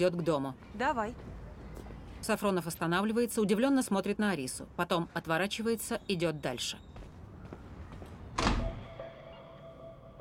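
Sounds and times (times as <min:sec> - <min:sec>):
speech: 0:00.0 - 0:01.3, 0:02.2 - 0:06.9
apartment door closing: 0:08.3 - 0:09.0.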